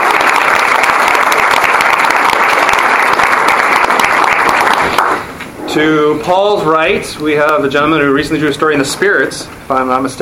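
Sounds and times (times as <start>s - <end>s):
audience applause: 0.0s - 5.3s
speech: 5.8s - 10.2s.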